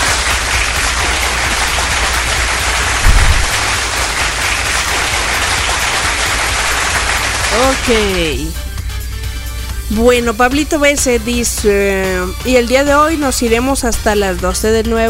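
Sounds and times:
applause sound effect: 0.0 - 8.2
speech: 7.9 - 8.6, 9.9 - 15.0.

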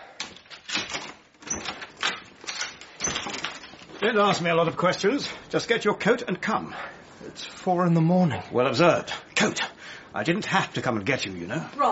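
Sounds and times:
door being unlocked and opened: 0.2 - 3.8
speech: 4.0 - 11.9.

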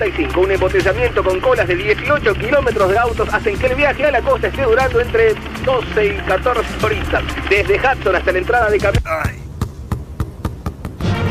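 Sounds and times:
speech: 0.0 - 9.4
low steady background: 0.0 - 11.0
YPF-branded ball bouncing: 8.9 - 11.0.

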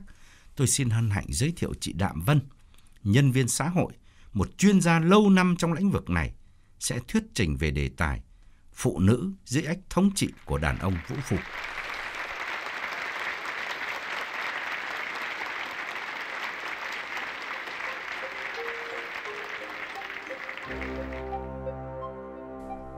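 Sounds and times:
speech: 0.6 - 11.8
loud applause from a seminar audience welcoming a speaker: 10.4 - 21.6.

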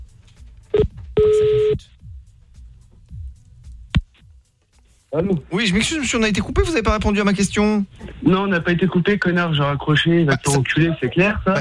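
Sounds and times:
telephone dialing beeps: 0.8 - 1.8
speech: 5.1 - 11.6.

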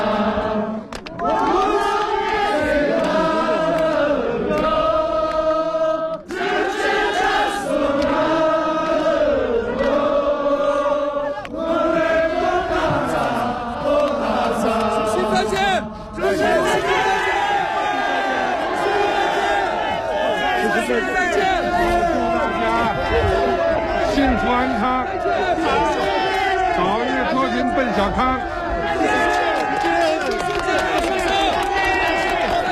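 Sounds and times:
villagers singing a song urging guests to stay: 0.0 - 32.7
villagers applauding: 29.0 - 32.7.

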